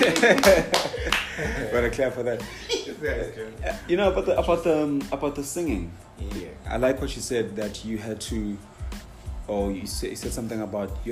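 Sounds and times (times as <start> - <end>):
hand clapping: 0.0 - 1.9
laughter: 0.0 - 4.4
speech: 0.1 - 8.7, 9.5 - 11.0.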